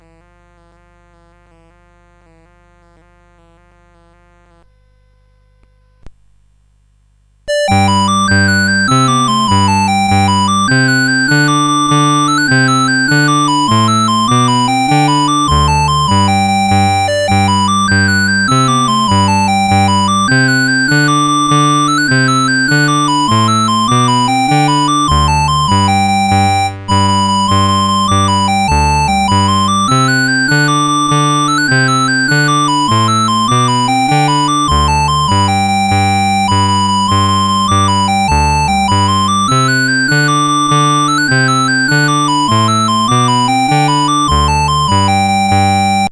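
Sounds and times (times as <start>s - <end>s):
chiptune music on CSG8580 sound chip: 7.5s - 46.1s.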